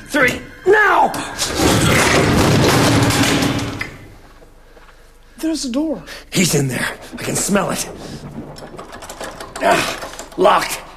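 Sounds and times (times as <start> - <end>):
speech: 0.1 - 2.4, 5.4 - 8.7, 9.6 - 10.8
heavy dresser tipped over onto floor: 1.4 - 4.0, 6.6 - 10.6.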